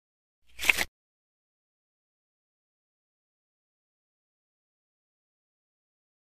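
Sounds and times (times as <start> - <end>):
deck of cards shuffling: 0.5 - 0.9.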